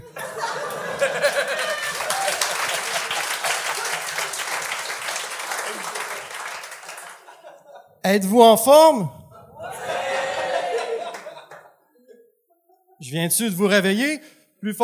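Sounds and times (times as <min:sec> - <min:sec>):
audience applause: 0:00.0 - 0:07.5, 0:10.0 - 0:11.7
laughter: 0:00.0 - 0:08.0, 0:09.3 - 0:13.0
speech: 0:08.1 - 0:09.2, 0:13.1 - 0:14.8.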